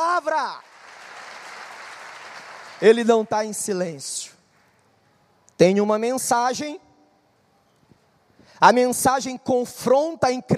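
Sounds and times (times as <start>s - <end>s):
speech: 0.2s - 0.7s, 2.8s - 4.4s, 5.6s - 6.8s, 8.6s - 10.5s
audience applause: 0.6s - 3.0s.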